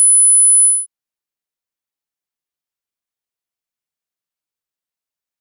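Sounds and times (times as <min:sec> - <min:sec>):
10 kHz test tone at 0 dB in the left channel: 0:00.1 - 0:00.9.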